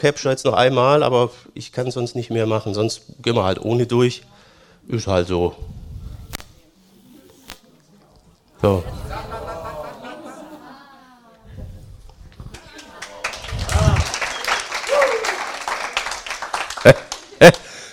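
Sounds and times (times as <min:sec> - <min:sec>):
speech: 0:00.0 - 0:05.8, 0:08.6 - 0:09.2, 0:16.8 - 0:17.6
laughter: 0:08.7 - 0:11.4, 0:12.5 - 0:15.2, 0:16.5 - 0:17.8
audience applause: 0:12.6 - 0:17.6.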